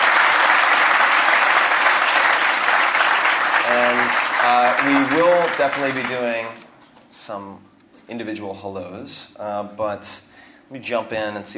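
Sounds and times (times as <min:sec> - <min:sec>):
audience applause: 0:00.0 - 0:06.6
speech: 0:03.7 - 0:06.6, 0:07.2 - 0:11.5.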